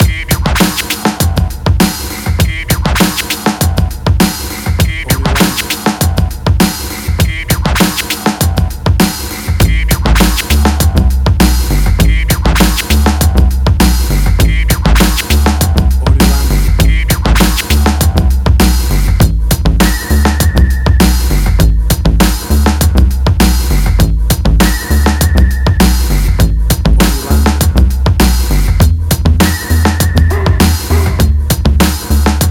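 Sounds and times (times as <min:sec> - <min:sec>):
1990s hip hop music: 0:00.0 - 0:32.4.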